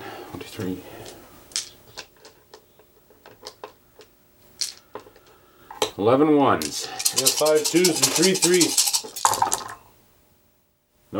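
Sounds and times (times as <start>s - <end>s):
speech: 0.3s - 1.2s, 6.0s - 8.8s
dice clattering: 1.6s - 2.1s, 4.6s - 5.1s, 6.6s - 9.8s.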